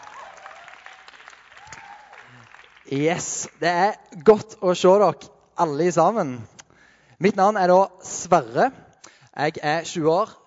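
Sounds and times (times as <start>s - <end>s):
audience applause: 0.0s - 3.6s
speech: 2.8s - 6.5s, 7.2s - 8.8s, 9.4s - 10.4s.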